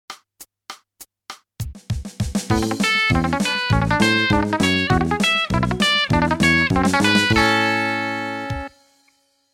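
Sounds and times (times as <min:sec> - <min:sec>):
country music: 0:02.5 - 0:08.8.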